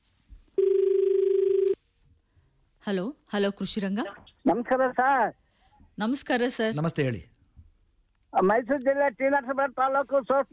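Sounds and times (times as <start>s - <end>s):
telephone ring signalling an incoming call to a farming phone-in programme: 0.6s - 1.8s
speech: 2.8s - 5.4s, 6.0s - 7.3s, 8.3s - 10.5s.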